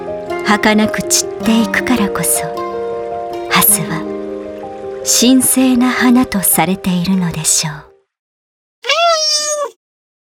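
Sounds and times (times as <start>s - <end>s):
speech: 0.5s - 2.6s, 3.6s - 4.1s, 5.0s - 7.9s
cat meowing: 8.8s - 9.8s.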